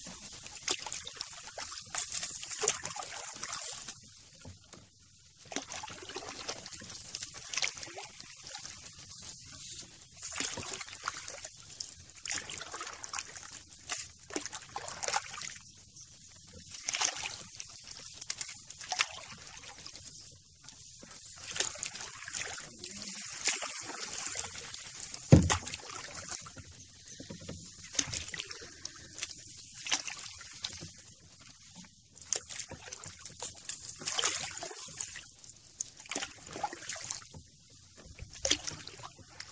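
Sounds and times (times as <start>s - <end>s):
river water trickling and sloshing around a canoe: 0.0s - 39.5s
sharp knock or splash: 25.2s - 26.0s.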